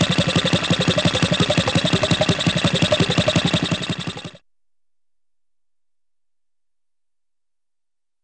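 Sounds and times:
funny cartoon engine running steadily: 0:00.0 - 0:04.4.

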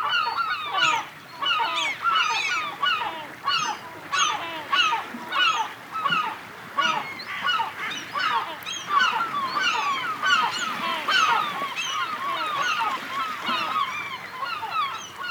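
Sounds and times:
birds: 0:00.0 - 0:15.2
small sea waves: 0:00.0 - 0:15.2.

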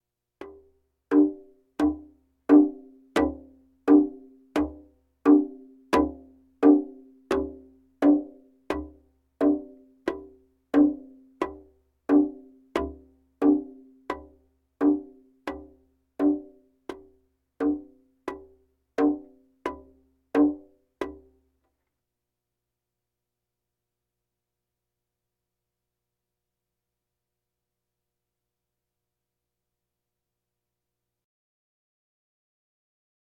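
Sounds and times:
bongos: 0:00.4 - 0:21.4.

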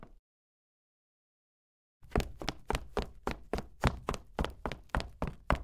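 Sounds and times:
soft high heel footsteps on wood: 0:02.1 - 0:05.6.

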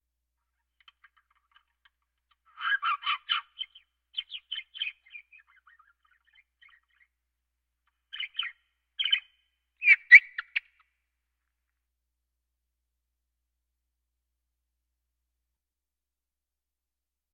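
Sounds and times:
birds: 0:00.6 - 0:07.2, 0:07.9 - 0:11.0.

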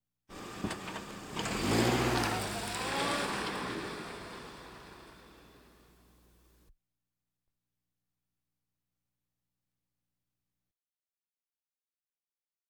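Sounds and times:
various automobiles: 0:00.3 - 0:06.6.

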